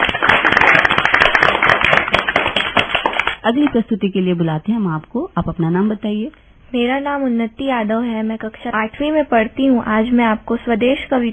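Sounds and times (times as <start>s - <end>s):
children applauding: 0.0s - 3.4s
speech: 3.4s - 11.3s.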